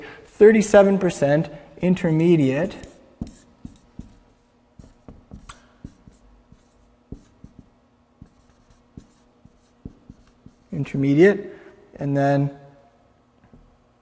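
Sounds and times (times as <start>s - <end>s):
speech: 0.4s - 2.9s, 10.8s - 12.6s
writing on a board: 2.7s - 10.7s.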